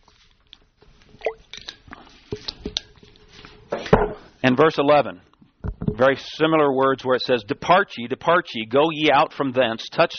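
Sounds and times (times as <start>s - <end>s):
person sipping and swallowing water: 1.0s - 2.5s
speech: 4.5s - 5.3s, 6.0s - 10.1s.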